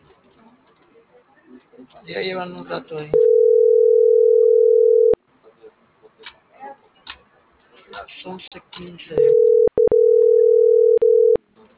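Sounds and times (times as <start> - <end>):
speech: 1.8 - 3.4, 8.3 - 9.6
telephone ringing unanswered: 3.2 - 5.2, 9.2 - 11.4.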